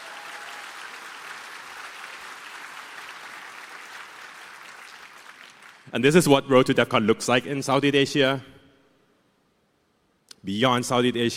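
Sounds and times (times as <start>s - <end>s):
crowd clapping: 0.0s - 5.9s
speech: 5.9s - 8.5s, 10.4s - 11.3s.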